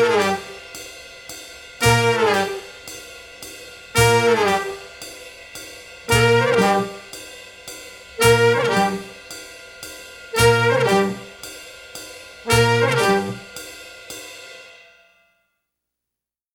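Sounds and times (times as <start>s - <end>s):
expressive jazz ornamentation: 0.0s - 0.8s, 1.8s - 2.9s, 4.0s - 5.1s, 6.1s - 7.2s, 8.2s - 9.3s, 10.3s - 11.5s, 12.5s - 13.6s.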